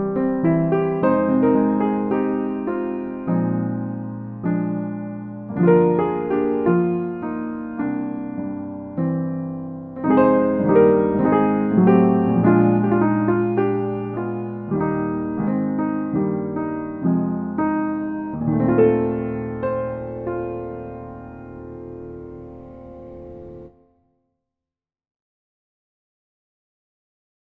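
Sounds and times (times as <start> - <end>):
lazy piano music: 0.0 - 23.8.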